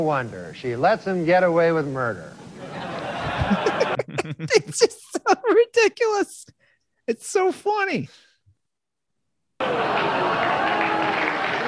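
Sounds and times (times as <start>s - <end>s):
speech: 0.0s - 2.8s, 3.4s - 8.3s, 9.6s - 10.5s
laughter: 2.6s - 5.7s
crowd applause: 9.6s - 11.6s.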